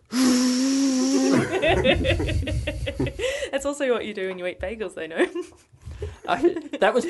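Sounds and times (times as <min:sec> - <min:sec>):
voice imitating a vacuum cleaner: 0:00.1 - 0:01.6
breathy laughter: 0:01.1 - 0:03.5
speech: 0:01.3 - 0:07.0.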